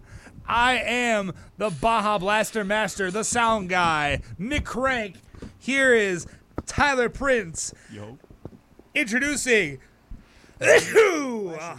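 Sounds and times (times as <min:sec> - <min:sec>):
speech: 0:00.5 - 0:08.3, 0:09.0 - 0:09.9, 0:10.6 - 0:11.7
sneeze: 0:10.6 - 0:11.2.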